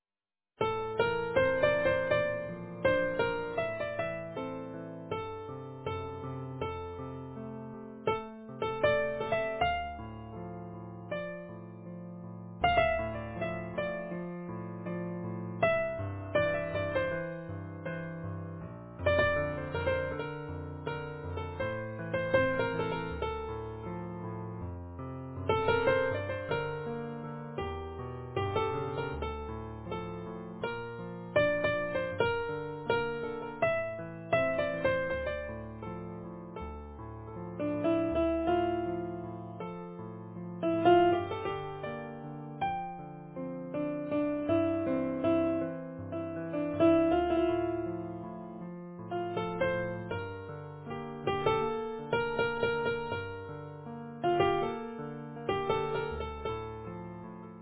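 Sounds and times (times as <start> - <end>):
easy piano: 0.6 - 57.5.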